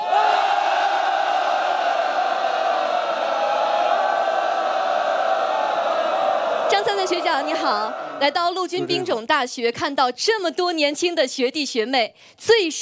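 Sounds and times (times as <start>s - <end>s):
large audience applauding and cheering: 0.0s - 8.3s
speech: 7.0s - 12.7s.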